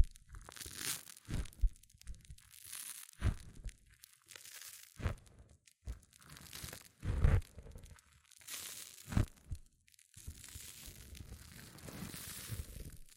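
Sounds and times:
sharp low thumps and crunchy squishes: 0.0s - 4.0s, 5.0s - 8.0s, 9.0s - 10.5s
hair mousse fizzing and crackling: 0.1s - 13.1s.

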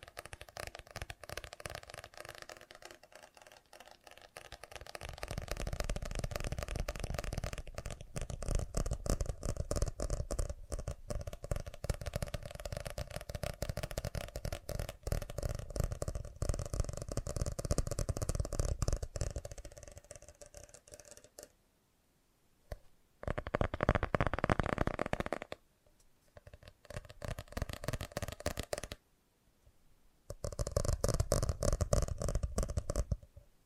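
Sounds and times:
fast tapping: 0.0s - 21.5s, 23.2s - 25.6s, 26.4s - 29.0s, 30.3s - 33.3s.

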